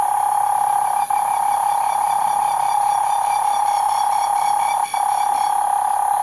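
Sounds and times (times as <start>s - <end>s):
cane toad trill at night in Australia: 0.1s - 6.1s.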